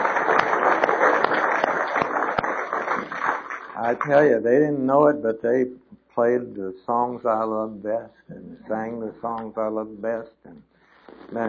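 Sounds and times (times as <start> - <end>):
audience applause: 0.0 - 4.3
speech: 3.9 - 10.4, 11.3 - 11.4.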